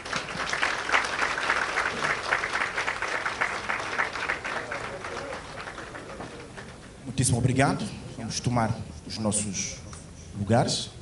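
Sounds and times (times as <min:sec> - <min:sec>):
audience applause: 0:00.0 - 0:07.0
speech: 0:07.2 - 0:09.8, 0:10.4 - 0:10.9.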